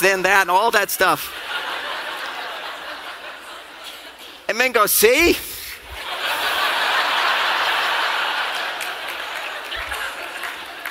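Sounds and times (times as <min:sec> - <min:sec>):
speech: 0:00.0 - 0:01.7, 0:04.5 - 0:05.5
laughter: 0:01.3 - 0:04.4, 0:05.9 - 0:10.9
crowd applauding: 0:06.0 - 0:10.9.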